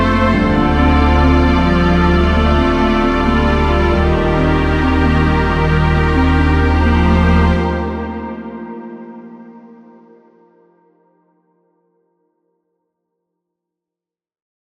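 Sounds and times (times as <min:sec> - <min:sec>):
orchestral ambient music: 0:00.0 - 0:10.4.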